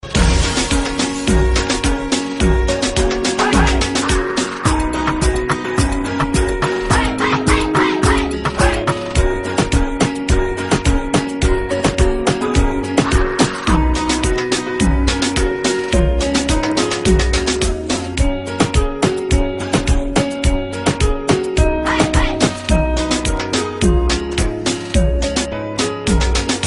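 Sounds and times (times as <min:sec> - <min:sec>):
Christmas reggaeton music: 0:00.0 - 0:26.6.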